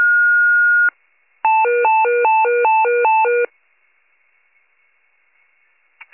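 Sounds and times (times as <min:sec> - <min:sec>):
fire pager alert: 0:00.1 - 0:03.5.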